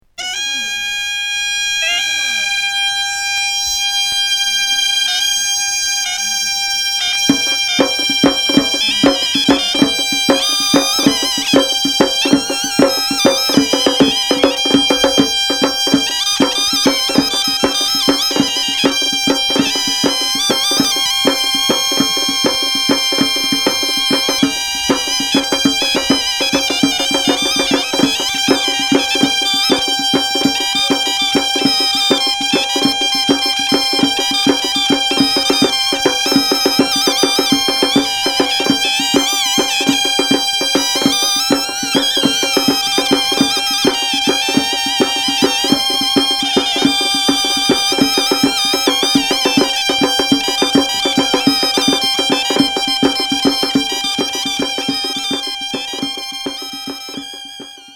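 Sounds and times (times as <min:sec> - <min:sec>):
Greek music: 0:00.2 - 0:57.9.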